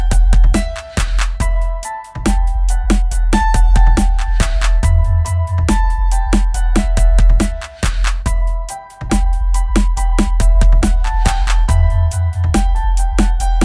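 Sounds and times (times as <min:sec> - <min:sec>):
lyric piano: 0:00.0 - 0:13.6.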